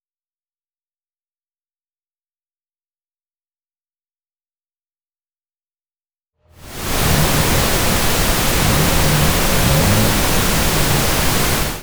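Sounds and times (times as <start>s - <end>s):
engine revving: 6.6s - 11.8s.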